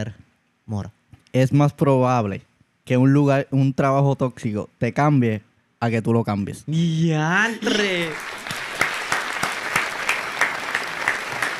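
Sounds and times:
speech: 0.0s - 8.3s
applause: 7.6s - 11.5s.

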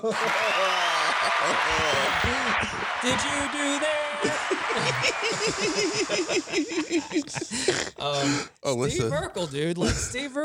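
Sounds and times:
applause track sound effect: 0.0s - 7.8s
laughter: 0.0s - 10.4s
speech: 0.0s - 10.4s.

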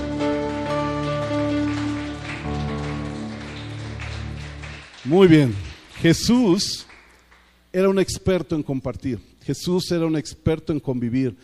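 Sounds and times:
audience applause: 0.0s - 7.5s
speech: 5.0s - 6.9s, 7.7s - 11.4s.

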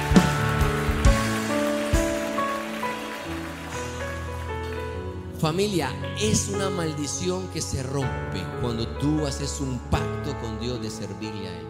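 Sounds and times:
audience applauding: 0.0s - 5.2s
speech: 5.4s - 11.6s.

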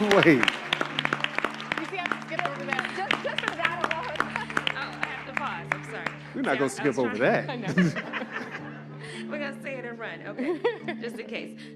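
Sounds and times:
audience clapping: 0.0s - 7.5s
speech: 0.2s - 0.6s, 6.4s - 8.1s, 10.2s - 11.7s
laughter: 2.5s - 5.3s, 6.3s - 9.6s, 10.3s - 11.5s.

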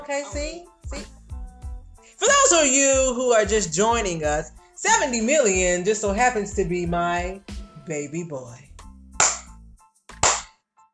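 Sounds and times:
speech: 0.1s - 1.2s, 2.2s - 8.7s
hand clapping: 9.2s - 9.5s, 10.1s - 10.5s.

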